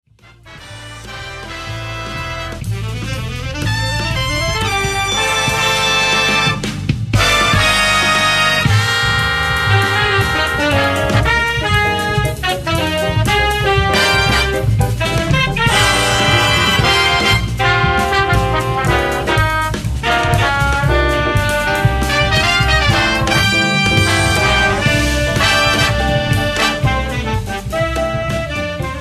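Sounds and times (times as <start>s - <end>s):
samba music: 0.0s - 28.9s.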